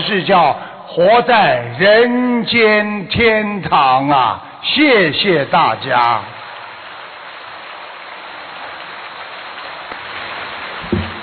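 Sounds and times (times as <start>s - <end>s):
speech: 0.1s - 6.4s
audience applause: 5.7s - 11.2s
low thump: 10.8s - 11.2s.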